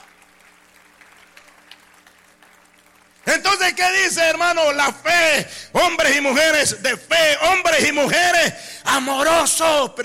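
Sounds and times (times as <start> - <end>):
audience applause: 0.0 - 3.3
speech: 3.4 - 10.0.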